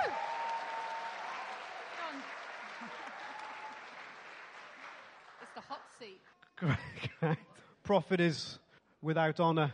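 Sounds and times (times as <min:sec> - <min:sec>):
crowd applauding: 0:00.0 - 0:06.1
speech: 0:06.0 - 0:09.7.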